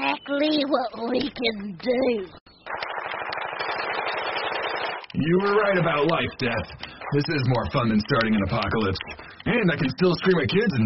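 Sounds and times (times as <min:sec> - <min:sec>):
speech: 0:00.3 - 0:02.4, 0:05.2 - 0:10.8
video game machine gun fire: 0:02.7 - 0:05.8.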